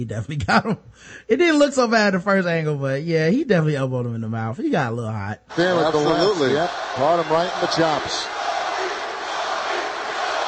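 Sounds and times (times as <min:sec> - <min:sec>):
speech: 0:00.0 - 0:08.4
arena crowd cheering: 0:05.5 - 0:10.4.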